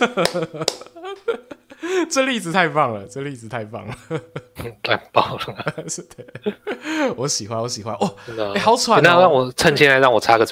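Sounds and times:
sharp quick hand claps: 0:00.0 - 0:01.3
laughter: 0:00.0 - 0:02.1, 0:03.8 - 0:07.2
speech: 0:00.0 - 0:10.5.

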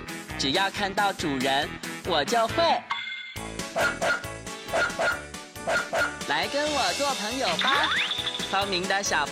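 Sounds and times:
speech: 0:00.4 - 0:05.2, 0:06.4 - 0:09.3
dog barking: 0:03.8 - 0:06.1.

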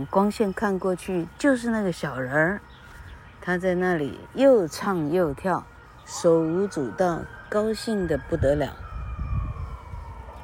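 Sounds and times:
speech: 0:00.0 - 0:02.7, 0:03.4 - 0:08.8
ambulance siren: 0:00.0 - 0:10.4.

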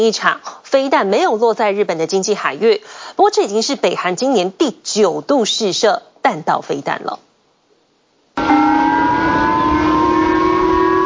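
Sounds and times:
speech: 0:00.0 - 0:07.2
civil defense alert siren: 0:08.4 - 0:11.0.

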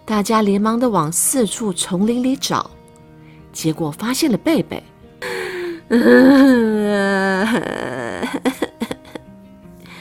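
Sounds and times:
speech: 0:00.1 - 0:02.8, 0:03.6 - 0:04.9, 0:05.9 - 0:08.6
crying: 0:05.2 - 0:08.6.

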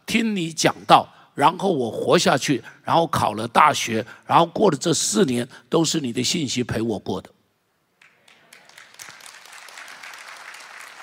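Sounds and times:
speech: 0:00.1 - 0:07.4
audience applause: 0:08.0 - 0:11.0.

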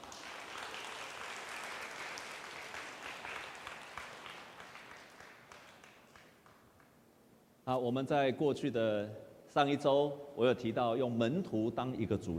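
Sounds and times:
audience applause: 0:00.0 - 0:06.6
speech: 0:07.7 - 0:12.3.

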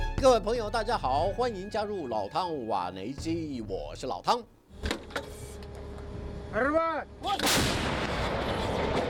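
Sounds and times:
speech: 0:00.2 - 0:04.5, 0:06.5 - 0:07.9
self-propelled howitzer firing: 0:07.4 - 0:08.9.

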